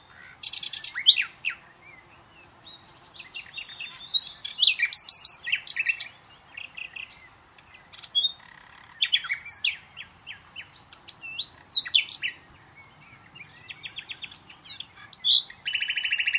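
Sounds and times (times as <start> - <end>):
common nightingale song: 0.0 - 16.3.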